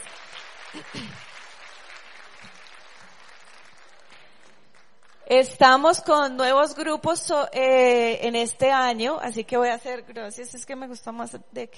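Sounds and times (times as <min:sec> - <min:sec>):
audience welcome applause: 0:00.0 - 0:05.2
speech: 0:00.7 - 0:01.4, 0:05.3 - 0:11.7.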